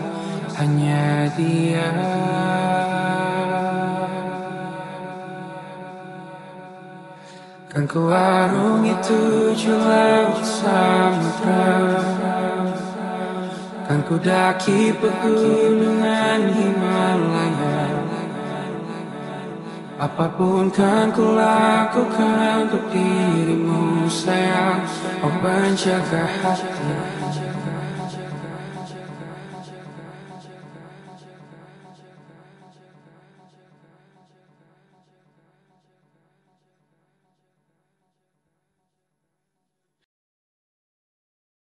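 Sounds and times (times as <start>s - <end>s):
a cappella singing: 0.0s - 32.2s.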